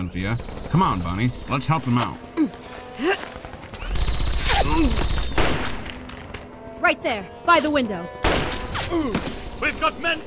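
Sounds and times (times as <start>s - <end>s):
speech: 0.0s - 3.4s, 4.6s - 5.2s, 6.8s - 8.2s, 8.9s - 10.2s
gunfire from inside a house during a shootout: 0.2s - 1.8s, 3.9s - 5.8s, 8.2s - 10.2s.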